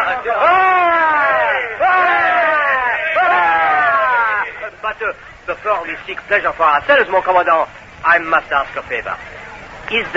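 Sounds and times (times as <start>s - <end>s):
group of men roaring cheers in unison: 0.0s - 4.8s
speech: 0.1s - 0.9s, 4.8s - 10.1s.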